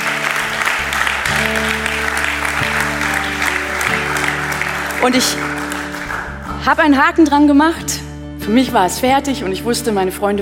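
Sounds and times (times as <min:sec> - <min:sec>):
audience applause: 0:00.0 - 0:06.5
speech: 0:05.0 - 0:05.5, 0:06.6 - 0:10.4.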